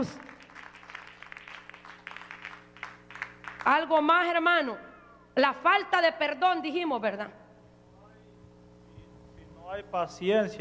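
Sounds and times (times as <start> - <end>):
speech: 0.0 - 0.3, 3.6 - 7.4, 9.7 - 10.5
audience clapping hands: 0.0 - 3.8.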